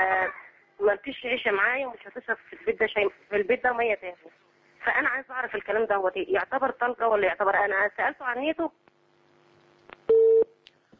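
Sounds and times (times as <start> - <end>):
speech: 0.3 - 8.9
telephone busy tone after dropped call: 10.1 - 10.4.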